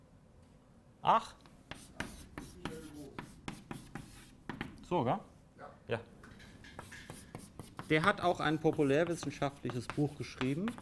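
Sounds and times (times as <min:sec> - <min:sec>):
speech: 0:01.0 - 0:01.4, 0:04.9 - 0:05.3, 0:05.9 - 0:06.1, 0:07.9 - 0:10.8
pen writing an author's name on paper: 0:01.7 - 0:04.4, 0:06.7 - 0:10.8.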